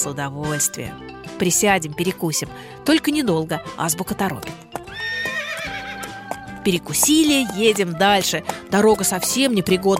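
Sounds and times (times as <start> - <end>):
speech: 0.0 - 4.6, 6.6 - 9.9
hooves clopping: 4.4 - 9.9
horse neighing: 4.9 - 6.6.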